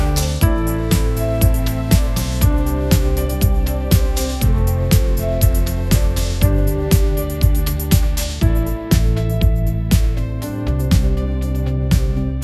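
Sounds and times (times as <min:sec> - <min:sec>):
upbeat pop melody ringtone: 0:00.0 - 0:12.4.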